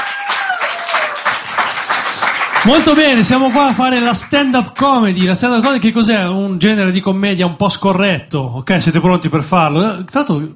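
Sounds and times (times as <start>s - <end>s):
audience applause at a stand-up comedy show: 0.0s - 4.3s
speech: 2.6s - 10.5s.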